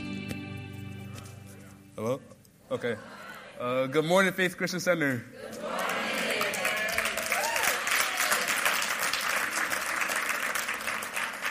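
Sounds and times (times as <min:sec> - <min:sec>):
speech: 0:02.0 - 0:05.6
audience applause: 0:05.8 - 0:11.4.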